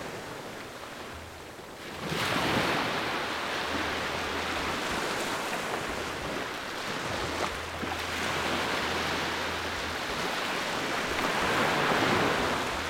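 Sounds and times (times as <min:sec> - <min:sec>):
beach waves in Fiji: 0:00.0 - 0:12.8.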